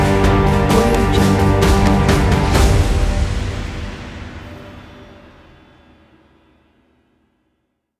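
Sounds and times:
cinematic opener music: 0:00.0 - 0:05.2.

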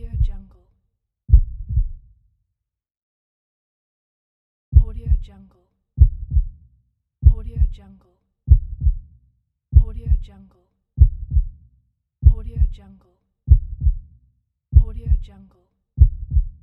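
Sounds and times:
heartbeat: 0:00.0 - 0:00.5, 0:01.3 - 0:02.1, 0:04.8 - 0:05.3, 0:06.0 - 0:06.6, 0:07.2 - 0:07.8, 0:08.5 - 0:09.1, 0:09.7 - 0:10.3, 0:11.0 - 0:11.6, 0:12.2 - 0:12.8, 0:13.5 - 0:14.1, 0:14.7 - 0:15.3, 0:16.0 - 0:16.6.

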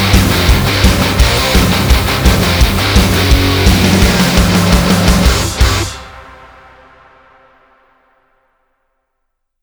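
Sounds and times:
heavy metal music: 0:00.0 - 0:07.8.

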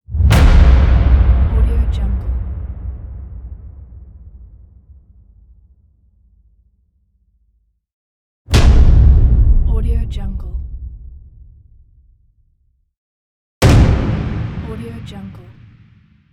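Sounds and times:
hit: 0:00.1 - 0:05.8, 0:08.5 - 0:09.8, 0:13.6 - 0:16.3.

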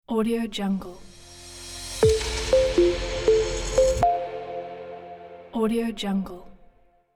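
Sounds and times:
technology logo sting: 0:01.0 - 0:06.0.

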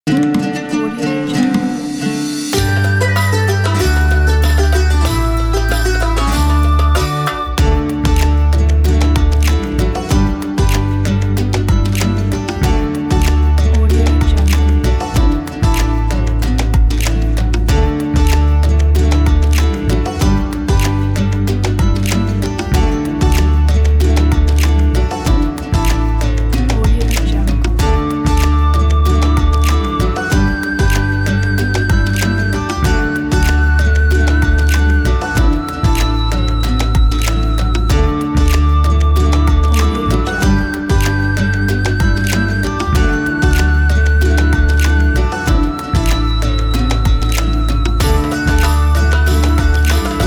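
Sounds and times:
Ramadan music: 0:00.0 - 0:50.2.

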